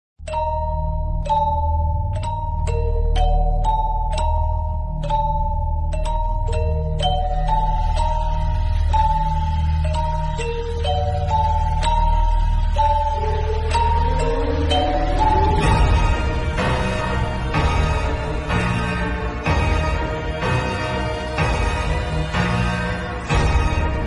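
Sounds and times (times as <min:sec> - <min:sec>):
villain background music ringtone: 0:00.2 - 0:24.0.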